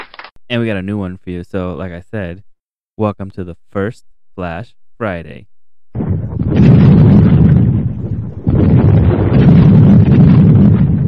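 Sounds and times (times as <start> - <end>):
speech: 0.5 - 5.5
thunder sound effect: 5.9 - 11.0.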